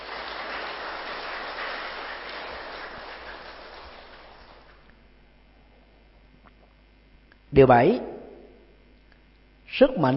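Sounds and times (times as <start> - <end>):
crowd applause: 0.0 - 4.9
speech: 7.5 - 8.1, 9.8 - 10.1.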